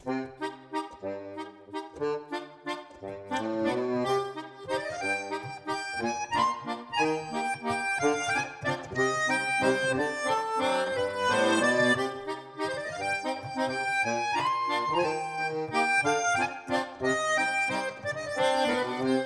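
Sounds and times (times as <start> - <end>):
accordion: 0.0 - 19.2.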